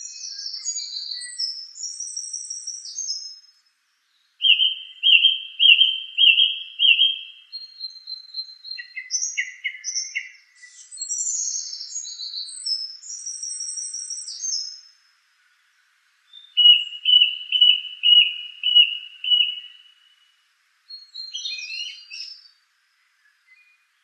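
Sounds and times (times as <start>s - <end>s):
song thrush singing: 0.0s - 15.1s, 16.2s - 24.0s.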